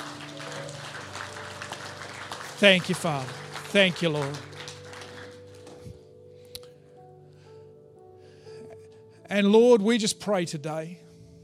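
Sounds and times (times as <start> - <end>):
audience clapping: 0.0 - 6.0
speech: 2.6 - 4.5, 9.3 - 11.0.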